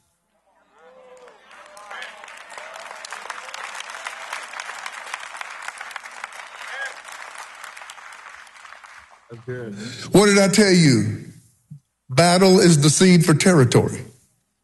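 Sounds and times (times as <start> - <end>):
audience clapping: 0.7 - 9.7
speech: 9.3 - 11.2, 12.3 - 14.1.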